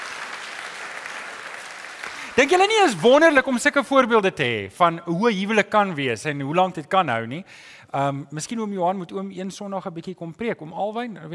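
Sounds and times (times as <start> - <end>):
audience applause: 0.0 - 3.0
speech: 2.4 - 11.3.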